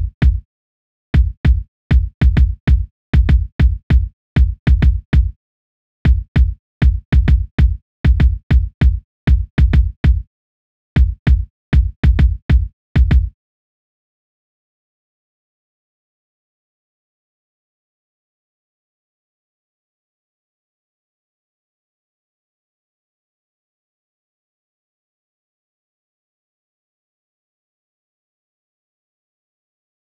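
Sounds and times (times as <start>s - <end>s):
instrumental kick drum: 0.0s - 0.4s, 1.2s - 5.4s, 6.1s - 10.3s, 11.0s - 13.4s.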